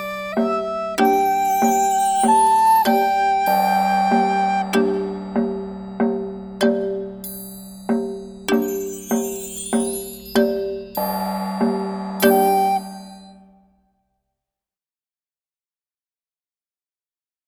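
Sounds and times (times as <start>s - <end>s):
percussion: 0.0s - 13.4s.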